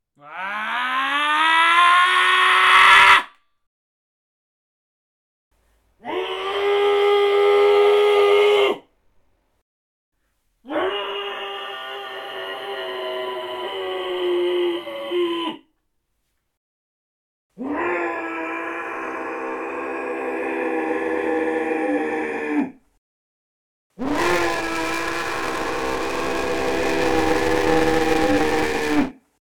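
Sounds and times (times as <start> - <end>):
person screaming: 0.2 - 3.4, 6.0 - 8.8, 10.7 - 15.6, 17.6 - 22.7, 24.0 - 29.2.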